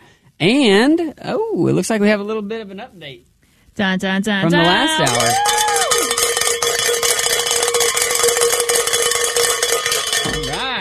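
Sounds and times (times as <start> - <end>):
speech: 0.4 - 5.6
bell rung to celebrate pledge goal: 4.5 - 10.7.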